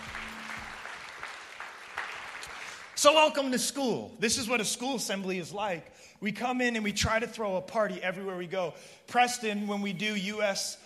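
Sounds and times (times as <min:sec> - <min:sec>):
audience applause at a school assembly: 0:00.0 - 0:03.0
speech: 0:03.0 - 0:10.8.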